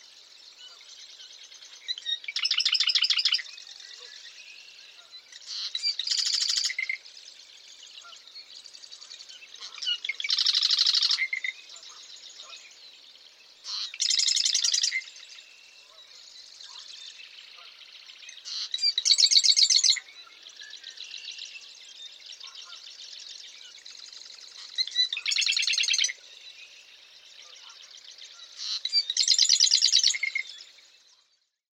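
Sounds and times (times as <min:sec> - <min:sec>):
male Eastern Marsh Wren normal song in Massachusetts: 0:00.6 - 0:31.1.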